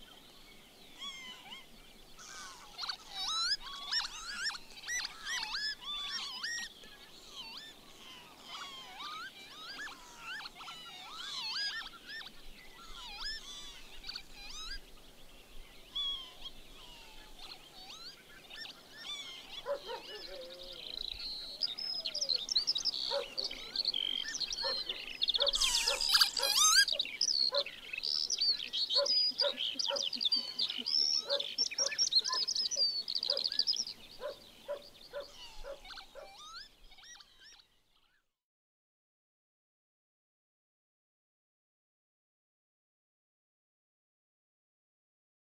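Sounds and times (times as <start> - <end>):
northern lapwing calling: 1.0 - 14.9, 15.9 - 38.2.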